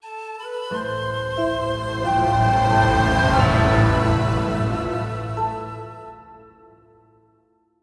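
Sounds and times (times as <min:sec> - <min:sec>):
legendary musical stinger: 0:00.8 - 0:06.8.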